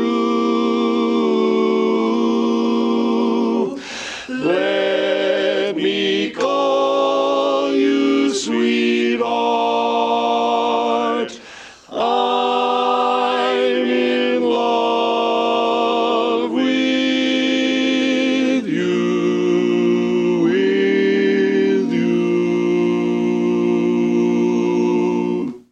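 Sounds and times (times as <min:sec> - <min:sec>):
baritone part of a barbershop quartet singing: 0:00.0 - 0:25.7.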